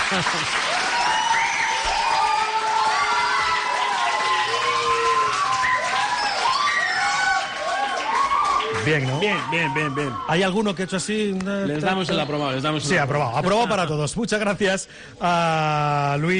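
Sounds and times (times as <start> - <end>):
children applauding and cheering: 0.0 - 10.4
speech: 0.1 - 0.8, 8.9 - 16.3.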